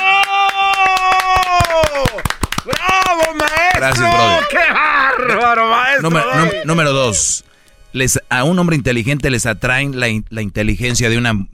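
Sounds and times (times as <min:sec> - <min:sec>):
hand clapping: 0:00.0 - 0:04.5
laughter: 0:02.1 - 0:07.4
speech: 0:03.8 - 0:11.5.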